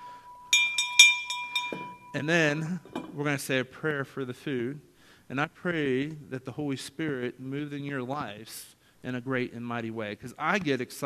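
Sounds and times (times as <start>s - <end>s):
dinner bell ringing: 0.0s - 3.2s
speech: 2.1s - 11.0s.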